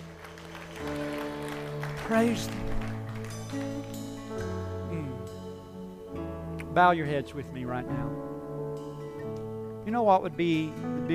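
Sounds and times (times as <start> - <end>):
audience clapping: 0.0 - 5.1
sustained low musical tones: 0.0 - 11.1
speech: 2.1 - 2.7, 6.8 - 8.3, 9.8 - 11.1.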